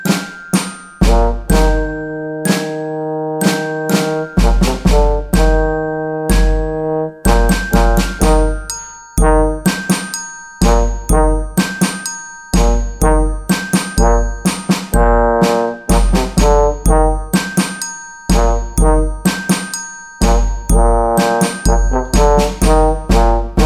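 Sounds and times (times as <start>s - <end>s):
percussion: 0.0s - 23.6s
rock trombone: 1.0s - 1.9s, 3.0s - 9.9s, 10.6s - 11.8s, 12.6s - 17.6s, 18.3s - 19.5s, 20.2s - 23.6s.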